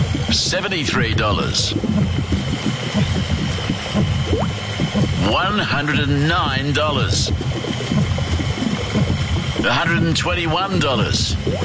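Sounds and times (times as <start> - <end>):
pump pumping fuel into a bowser tank: 0.0 - 11.6
speech: 0.3 - 3.2, 5.3 - 7.8, 9.6 - 11.6.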